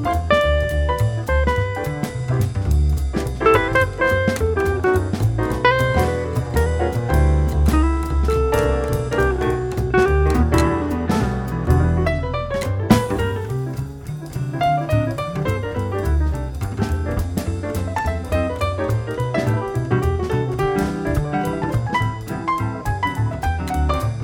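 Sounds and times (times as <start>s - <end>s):
jazz quartet bass: 0.0s - 24.2s
jazz quartet drums: 0.0s - 24.2s
jazz quartet piano: 0.0s - 24.2s.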